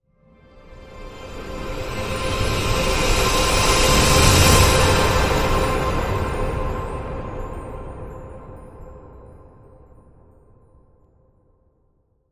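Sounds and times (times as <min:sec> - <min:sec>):
wish granted transition sound: 0:01.0 - 0:08.6.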